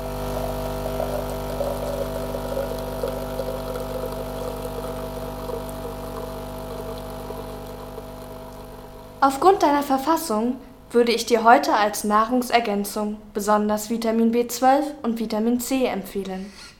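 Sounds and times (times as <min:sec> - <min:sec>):
coffee machine running: 0:00.0 - 0:09.2
speech: 0:09.2 - 0:16.7.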